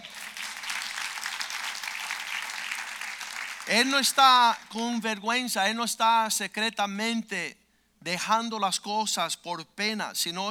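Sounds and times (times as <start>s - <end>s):
audience applause: 0.0s - 3.8s
speech: 3.7s - 10.4s.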